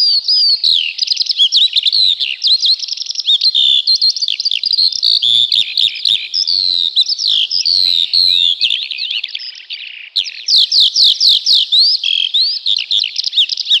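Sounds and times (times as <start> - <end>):
Eurasian skylark singing: 0.0 - 13.7.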